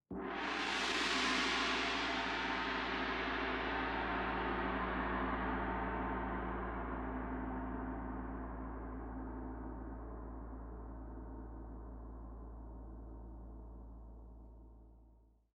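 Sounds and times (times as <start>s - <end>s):
gong: 0.2s - 14.4s.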